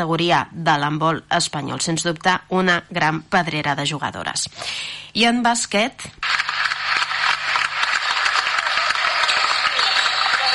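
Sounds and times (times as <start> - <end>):
speech: 0.0 - 6.7
applause at the Sant Josep pavilion for a retiring basketball player: 6.2 - 10.5.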